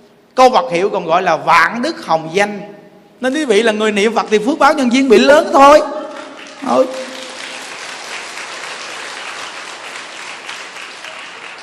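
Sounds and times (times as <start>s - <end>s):
speech: 0.4s - 6.0s, 6.6s - 7.1s
audience applause: 6.1s - 11.6s.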